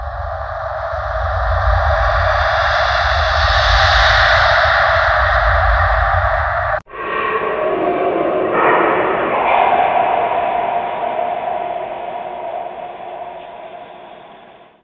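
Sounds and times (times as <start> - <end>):
creepy horror sounds: 0.0 - 14.8.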